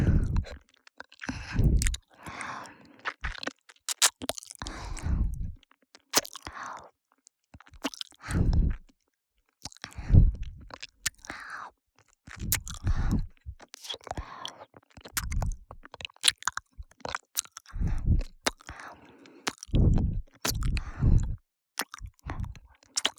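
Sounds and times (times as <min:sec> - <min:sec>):
ear licking sounds on the left: 0:00.0 - 0:02.1, 0:03.0 - 0:05.6, 0:07.6 - 0:08.9, 0:12.3 - 0:23.1.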